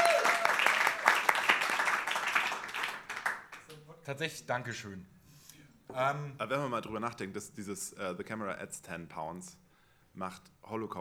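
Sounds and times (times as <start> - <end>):
audience applause at a live gala show: 0.0 - 3.8
speech: 4.1 - 5.2, 5.9 - 9.6, 10.2 - 10.9.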